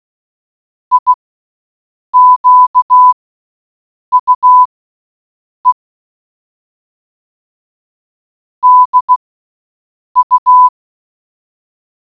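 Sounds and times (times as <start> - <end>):
morse code beeps: 0.9 - 1.1, 2.2 - 3.2, 4.1 - 4.7, 8.6 - 9.2, 10.2 - 10.7.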